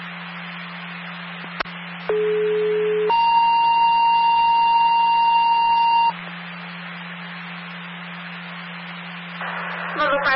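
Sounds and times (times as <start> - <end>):
constant low hum: 0.0 - 10.3
emergency communication system test alarm tone: 2.1 - 6.2.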